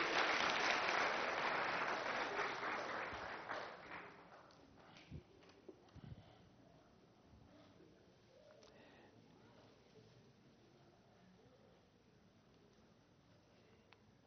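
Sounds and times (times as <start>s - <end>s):
audience applause: 0.0s - 4.5s.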